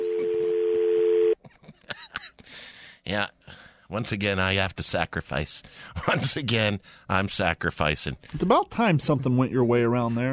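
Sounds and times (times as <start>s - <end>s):
telephone dial tone: 0.0s - 1.4s
speech: 3.1s - 10.3s.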